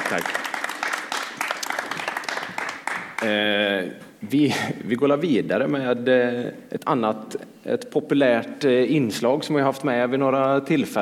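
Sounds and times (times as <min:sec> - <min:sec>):
audience applause: 0:00.0 - 0:03.4
speech: 0:00.1 - 0:00.4, 0:03.2 - 0:10.9.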